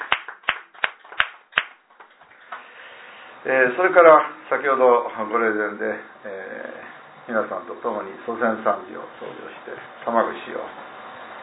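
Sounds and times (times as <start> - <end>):
sharp audience hand claps: 0.0 - 2.6
speech: 3.4 - 10.9.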